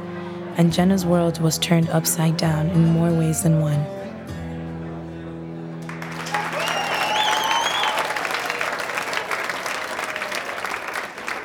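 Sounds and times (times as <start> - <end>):
speech: 0.6 - 4.0
applause: 5.8 - 11.4.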